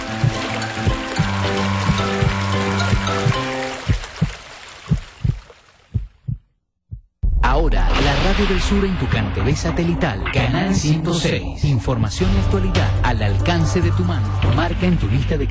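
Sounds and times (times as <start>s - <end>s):
heartbeat sound effect: 0.0s - 7.5s
speech: 8.4s - 15.4s.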